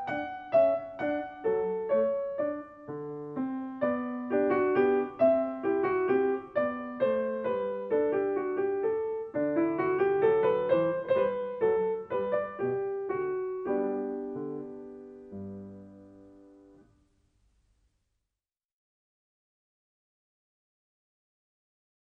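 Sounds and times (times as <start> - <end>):
piano minuet in G major: 0.0 - 17.0.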